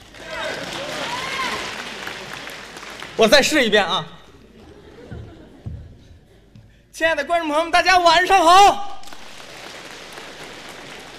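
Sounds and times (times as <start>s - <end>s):
audience clapping: 0.0s - 4.0s, 8.9s - 11.1s
speech: 3.2s - 4.2s, 7.0s - 8.9s
laughter: 4.4s - 6.7s.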